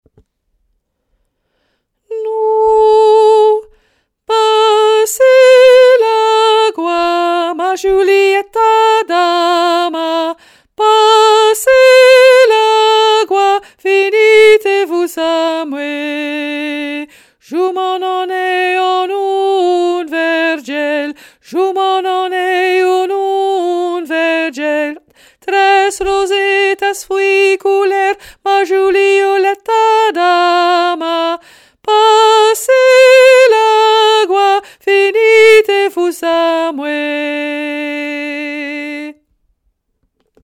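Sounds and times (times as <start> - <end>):
soprano singing: 2.0 - 39.3.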